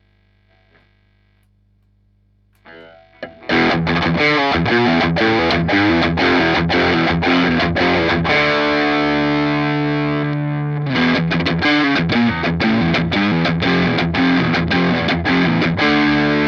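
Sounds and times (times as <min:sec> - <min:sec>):
Fender American Special Telecaster electric guitar: 0:02.6 - 0:16.4.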